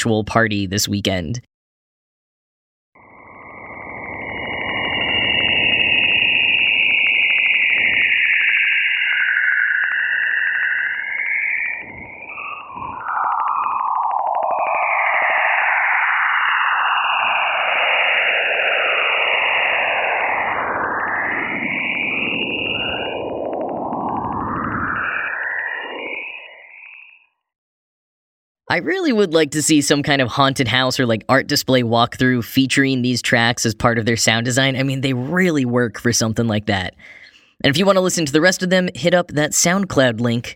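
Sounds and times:
speech: 0:00.0 - 0:01.5, 0:28.7 - 0:40.5
Juno spacecraft recording of Jupiter radio waves: 0:03.0 - 0:27.3.

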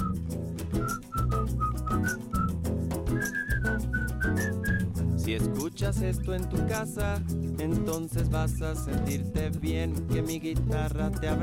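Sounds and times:
whistled melody hook of a song: 0:00.0 - 0:05.0
speech: 0:05.3 - 0:11.4.

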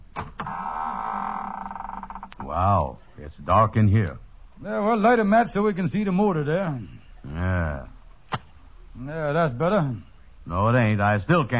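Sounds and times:
door creaking open: 0:00.0 - 0:02.9
speech: 0:02.6 - 0:07.9, 0:09.0 - 0:11.5.

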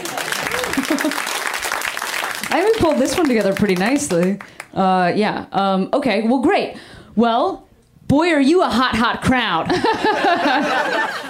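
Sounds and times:
laughter: 0:00.0 - 0:01.4, 0:09.7 - 0:11.2
audience clapping: 0:00.0 - 0:04.8
speech: 0:02.5 - 0:11.2.

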